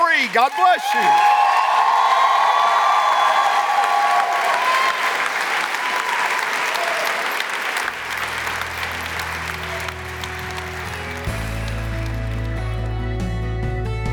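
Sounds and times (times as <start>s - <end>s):
audience clapping and cheering: 0.0s - 14.0s
speech: 0.2s - 1.4s
whoops: 0.8s - 7.3s.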